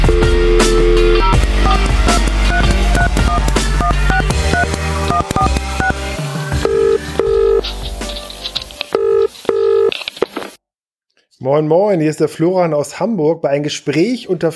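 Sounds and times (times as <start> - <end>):
telephone keypad dialing tones: 0.1 - 6.0, 6.6 - 7.6, 9.0 - 9.9
speech: 11.5 - 14.5.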